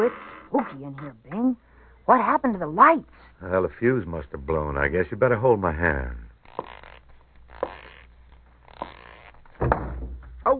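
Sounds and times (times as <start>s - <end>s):
speech: 0.0s - 6.7s
person bumping into open closet door: 9.6s - 10.4s.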